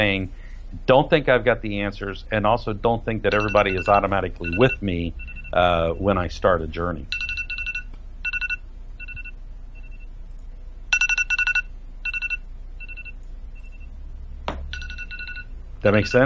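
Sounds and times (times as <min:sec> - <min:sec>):
speech: 0:00.0 - 0:07.2, 0:15.8 - 0:16.2
timer alarm ringing: 0:03.3 - 0:06.2, 0:07.0 - 0:10.1, 0:10.9 - 0:13.9, 0:14.6 - 0:16.2.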